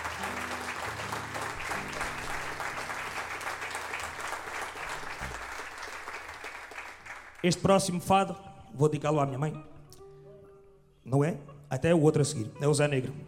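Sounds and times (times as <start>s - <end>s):
audience applause: 0.0s - 7.6s
speech: 7.4s - 9.7s, 11.1s - 13.2s.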